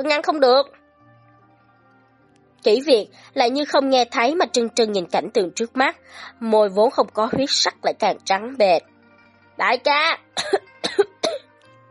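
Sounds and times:
speech: 0.0s - 0.8s, 2.6s - 8.9s, 9.6s - 11.1s
dry cough: 10.4s - 11.5s.

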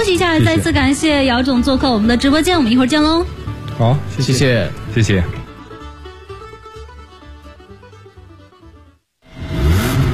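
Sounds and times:
speech: 0.0s - 5.4s
steady tonal musical passage: 0.4s - 9.0s
car engine revving: 9.2s - 10.1s.

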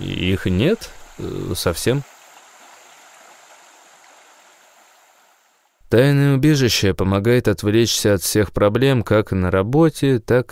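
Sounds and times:
speech: 0.0s - 2.1s, 5.9s - 10.4s
stream of clear clean water flowing: 0.0s - 5.8s.

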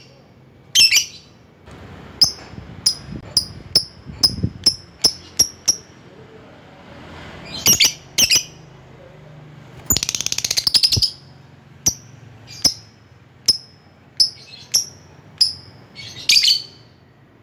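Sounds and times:
lovebird squawking and chirping: 0.7s - 1.3s, 2.2s - 5.9s, 7.4s - 8.6s, 9.8s - 16.9s.

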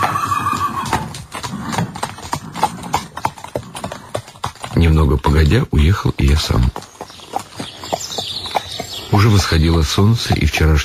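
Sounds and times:
horse harnessed to a tarantas carriage whinnying: 0.0s - 4.2s
horse hooves clip-clopping: 0.0s - 10.8s
speech: 4.8s - 6.9s, 9.1s - 10.8s.

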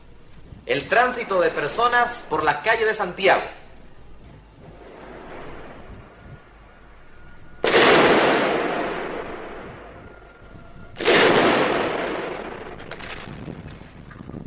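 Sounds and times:
speech: 0.7s - 3.6s
sirens in Santiago: 3.9s - 13.0s
bombs exploding on the government palace in Santiago: 4.0s - 14.1s.

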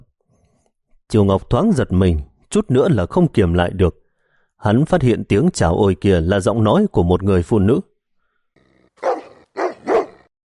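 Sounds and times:
speech: 1.1s - 4.0s, 4.6s - 7.9s
dog barking before a bush: 9.0s - 10.3s.

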